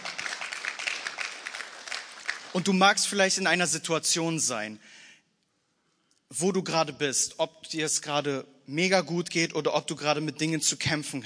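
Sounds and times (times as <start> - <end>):
audience applause: 0.0 - 2.7
speech: 2.5 - 5.0, 6.3 - 11.2.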